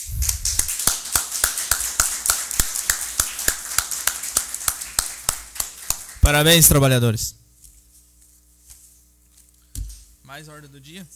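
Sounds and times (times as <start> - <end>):
rhythmic clapping after a unanimous vote at a city council session: 0.0 - 7.1
speech: 6.3 - 7.4, 10.4 - 11.1.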